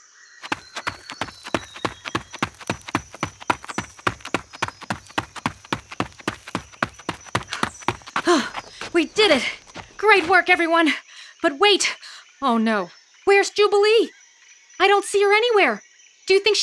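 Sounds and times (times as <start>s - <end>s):
footsteps of someone running fast: 0.4s - 10.7s
speech: 9.0s - 14.2s, 14.8s - 16.6s.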